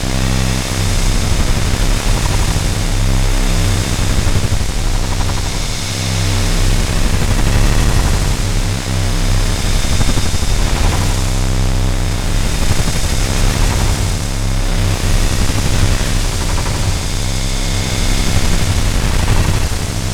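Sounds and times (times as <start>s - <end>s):
ambience: 0.0s - 20.1s.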